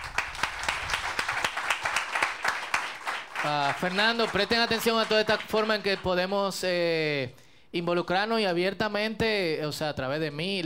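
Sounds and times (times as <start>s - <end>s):
applause: 0.0s - 6.4s
speech: 3.4s - 10.6s.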